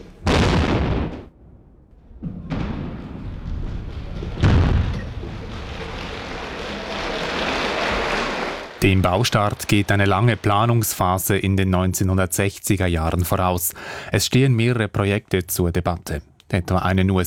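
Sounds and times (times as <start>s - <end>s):
first tunnel construction blasting explosion: 0.2s - 8.0s
applause: 5.3s - 11.7s
speech: 8.8s - 17.2s.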